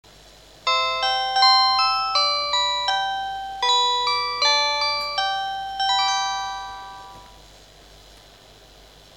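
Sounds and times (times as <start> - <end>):
chime: 0.7 - 7.4.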